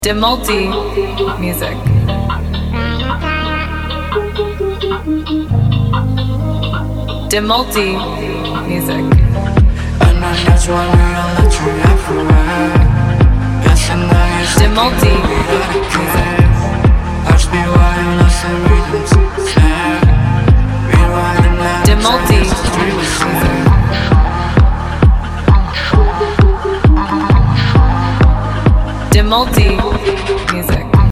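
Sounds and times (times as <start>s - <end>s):
modern EDM with high vocal chops: 0.0s - 31.1s.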